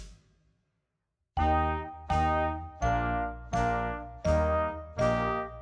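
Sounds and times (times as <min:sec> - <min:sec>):
loud slow glockenspiel: 0:01.4 - 0:05.4.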